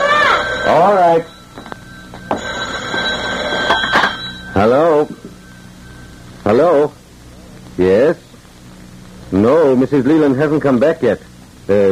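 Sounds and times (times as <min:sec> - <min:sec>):
telephone ringing with a high metallic bell tone: 0:00.0 - 0:07.1
speech: 0:00.7 - 0:01.4, 0:04.6 - 0:05.2, 0:06.4 - 0:07.0, 0:07.8 - 0:08.2, 0:09.3 - 0:11.8.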